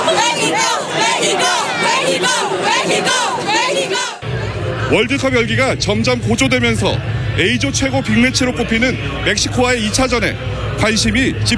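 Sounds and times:
fans shouting a chant: 0:00.0 - 0:11.5
low rumble: 0:04.2 - 0:11.5
speech: 0:04.9 - 0:11.5.

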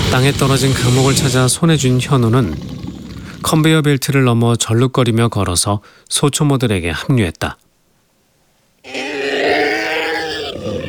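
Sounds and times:
speech: 0:00.1 - 0:07.6, 0:08.8 - 0:09.1
monster howling: 0:01.8 - 0:03.7, 0:08.8 - 0:10.8.

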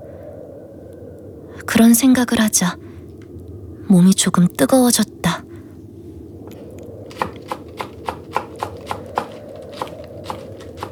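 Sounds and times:
faint steady hum: 0:00.0 - 0:10.9
speech: 0:01.6 - 0:02.8, 0:03.9 - 0:05.4
knife chopping green onion and radish on a cutting board: 0:07.1 - 0:10.9.

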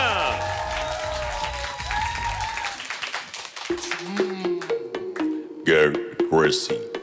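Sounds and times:
applause: 0:00.0 - 0:04.3
speech: 0:05.7 - 0:06.9.

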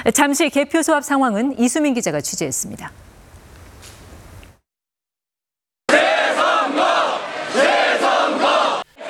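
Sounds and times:
speech: 0:00.0 - 0:03.2
large protest crowd shouting chants: 0:05.9 - 0:09.0.

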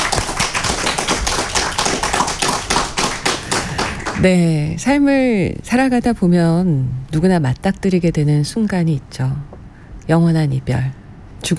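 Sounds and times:
crowd clapping: 0:00.0 - 0:04.5
speech: 0:04.2 - 0:11.5.

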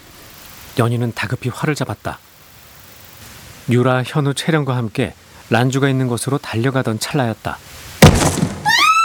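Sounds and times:
speech: 0:00.8 - 0:02.3, 0:03.7 - 0:08.2
heavy thud of something hitting the ground: 0:08.0 - 0:08.9.

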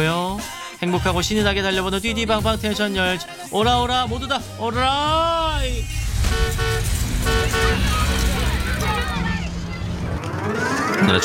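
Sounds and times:
speech: 0:00.0 - 0:08.4, 0:10.5 - 0:11.2
bus engine rumbling as it pulls away: 0:03.8 - 0:11.2
bus horn toots: 0:06.2 - 0:08.6.

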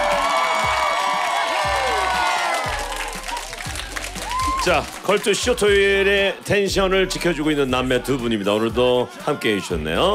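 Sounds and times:
crowd cheering, shouting and applauding at a live show: 0:00.0 - 0:06.0
speech: 0:04.6 - 0:10.1.

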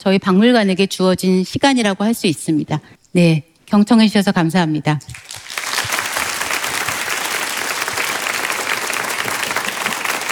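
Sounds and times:
speech: 0:00.0 - 0:05.3
audience applause: 0:05.1 - 0:10.3.

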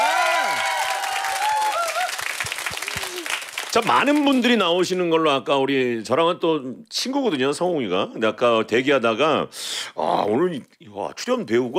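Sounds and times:
audience applause: 0:00.0 - 0:04.5
speech: 0:03.8 - 0:11.7.

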